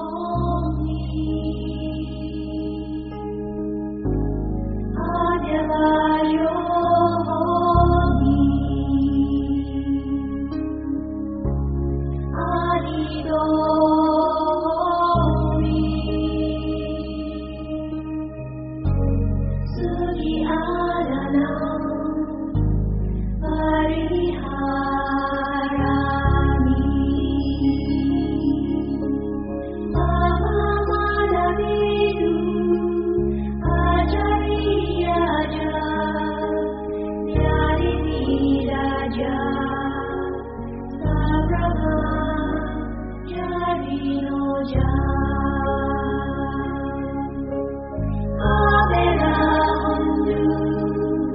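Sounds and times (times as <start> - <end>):
buttery music loop: 0.2 - 51.3.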